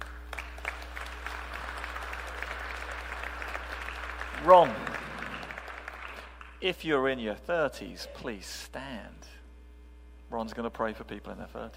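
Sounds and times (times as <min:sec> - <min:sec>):
audience applause: 0:00.0 - 0:06.6
low steady hum: 0:00.0 - 0:11.7
speech: 0:04.4 - 0:04.9, 0:06.6 - 0:09.3, 0:10.3 - 0:11.7.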